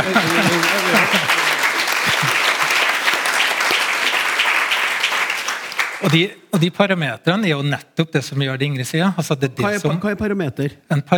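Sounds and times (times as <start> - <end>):
speech: 0.0 - 1.4, 2.2 - 2.5, 6.0 - 11.1
laughter: 0.0 - 3.0
audience applause: 0.0 - 6.3.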